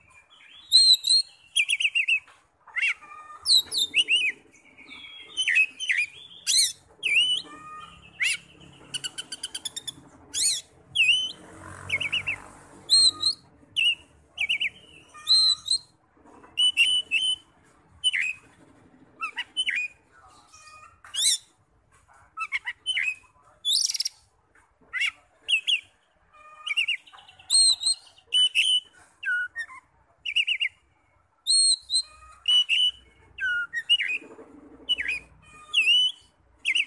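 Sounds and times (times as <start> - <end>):
Oriental magpie-robin singing whistles, trills and chirps: 0.3 - 15.9, 16.6 - 17.4, 18.0 - 18.4, 19.2 - 20.0, 22.4 - 24.2, 26.7 - 30.8, 31.5 - 34.2, 34.9 - 36.8.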